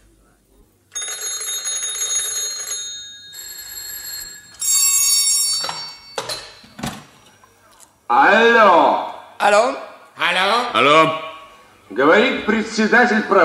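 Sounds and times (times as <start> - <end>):
telephone bells ringing: 0.9 - 6.9
short metallic clangs: 5.4 - 7.4
speech: 8.1 - 11.2, 11.9 - 13.4.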